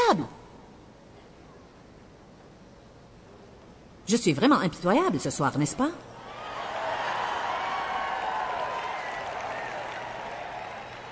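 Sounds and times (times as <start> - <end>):
speech: 0.1 - 0.4, 4.1 - 6.1
audience applause: 6.3 - 11.1.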